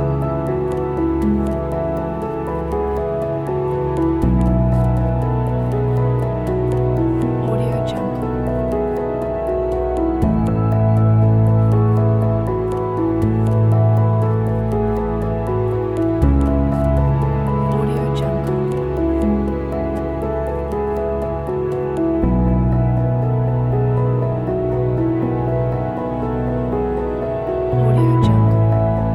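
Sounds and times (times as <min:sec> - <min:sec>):
atmospheric background: 0:00.0 - 0:29.1.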